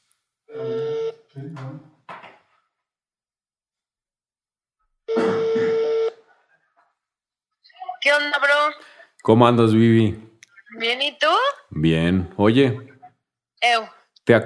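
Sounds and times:
phone ringing tone: 0:00.5 - 0:01.3, 0:05.1 - 0:06.2
phone dialing tone on speakerphone: 0:00.6 - 0:01.2, 0:05.1 - 0:06.2
speech: 0:01.5 - 0:02.0, 0:08.1 - 0:12.9, 0:13.6 - 0:14.4.

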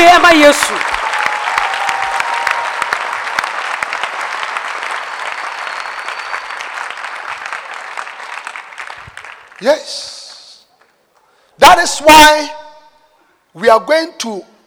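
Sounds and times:
audience clapping hands: 0:00.0 - 0:11.0
speech: 0:00.2 - 0:01.0, 0:09.6 - 0:10.1, 0:11.6 - 0:12.6, 0:13.6 - 0:14.5.

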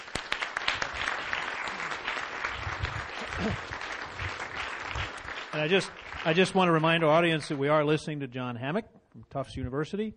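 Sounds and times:
audience applause for a Tufts University speaker: 0:00.0 - 0:06.9
speech: 0:03.4 - 0:03.7, 0:05.5 - 0:10.1.

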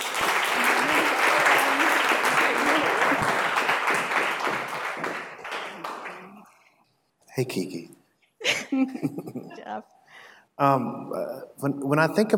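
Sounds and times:
audience applause: 0:00.0 - 0:06.5
speech: 0:07.4 - 0:08.0, 0:08.7 - 0:10.0, 0:10.6 - 0:12.3.

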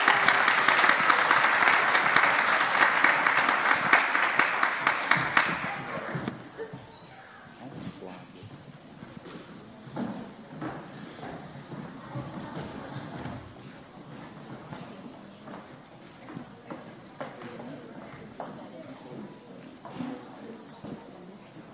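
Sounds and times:
audience applause welcoming a children's choir: 0:00.0 - 0:08.1, 0:08.7 - 0:21.7
murmuring voices: 0:00.0 - 0:21.7.

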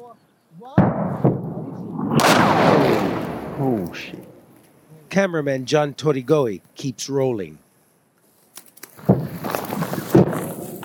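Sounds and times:
speech: 0:00.1 - 0:02.0, 0:03.6 - 0:04.3, 0:05.2 - 0:07.6
artillery rounds exploding in Bucha: 0:00.8 - 0:04.6, 0:09.0 - 0:10.8.

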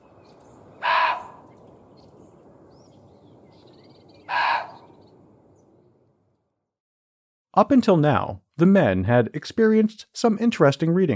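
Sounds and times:
muntjac deer barking: 0:00.8 - 0:01.4, 0:04.3 - 0:04.9
speech: 0:07.6 - 0:11.1.

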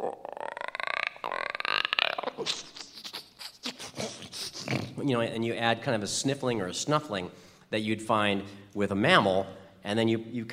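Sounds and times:
person imitating a frog croaking: 0:00.0 - 0:05.0
speech: 0:02.4 - 0:02.8, 0:05.0 - 0:10.5.

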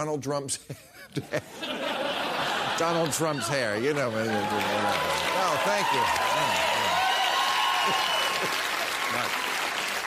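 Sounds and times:
speech: 0:00.0 - 0:01.9, 0:02.8 - 0:06.8, 0:07.9 - 0:09.4
laughter: 0:00.7 - 0:07.0
audience applause: 0:02.0 - 0:10.0
scattered cheers: 0:03.9 - 0:09.7.

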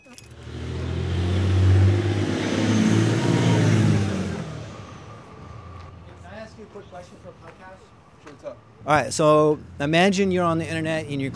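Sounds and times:
car engine humming as the vehicle drives and speeds up: 0:00.1 - 0:11.3
speech: 0:08.9 - 0:11.3.

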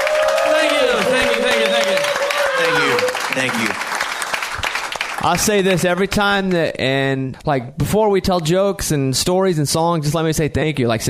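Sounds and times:
high sustained shout: 0:00.0 - 0:03.4
crowd cheering and whooping: 0:00.0 - 0:03.8
crowd clapping: 0:00.0 - 0:06.2
speech: 0:03.4 - 0:03.9, 0:05.2 - 0:11.0.

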